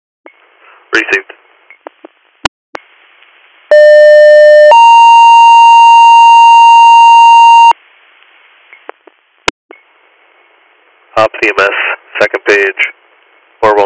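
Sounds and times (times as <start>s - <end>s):
speech: 0.9s - 1.4s, 11.5s - 12.9s
dispatch radio alert tones for ambulance: 3.7s - 7.8s.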